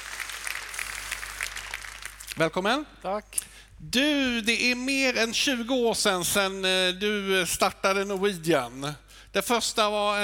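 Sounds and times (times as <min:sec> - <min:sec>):
audience applause: 0:00.0 - 0:02.3
speech: 0:02.4 - 0:10.2.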